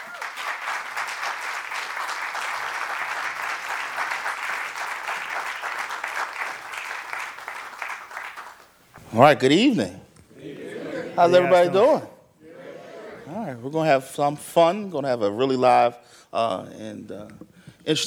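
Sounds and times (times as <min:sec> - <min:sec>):
audience applause at a Free Library of Philadelphia event: 0:00.0 - 0:08.8
speech: 0:09.1 - 0:10.0, 0:11.2 - 0:12.1, 0:13.6 - 0:18.0.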